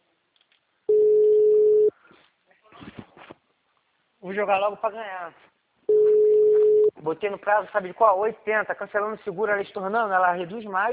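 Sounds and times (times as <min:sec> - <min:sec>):
telephone ringback tone: 0:00.9 - 0:01.9, 0:05.9 - 0:06.9
speech: 0:04.3 - 0:05.6, 0:07.0 - 0:10.9.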